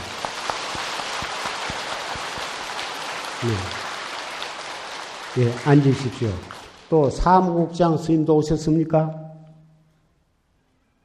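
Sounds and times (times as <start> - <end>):
crowd applause: 0.0 - 7.5
low voice: 3.4 - 3.7
speech: 3.4 - 3.8, 5.4 - 9.2.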